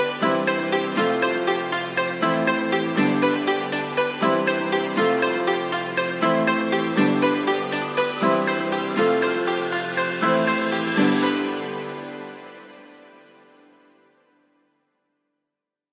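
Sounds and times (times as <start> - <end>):
happy peppy music: 0.0 - 12.7.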